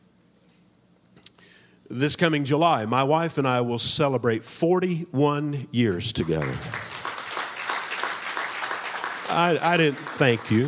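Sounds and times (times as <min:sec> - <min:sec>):
speech: 0:01.9 - 0:06.9, 0:09.3 - 0:10.6
audience applause: 0:06.2 - 0:10.6.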